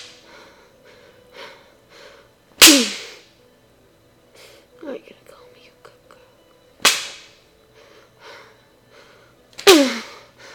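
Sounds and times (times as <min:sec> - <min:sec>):
soft breathing: 0:00.1 - 0:02.4, 0:07.6 - 0:09.5, 0:10.1 - 0:10.5
belt smack: 0:02.6 - 0:03.0, 0:06.8 - 0:07.4.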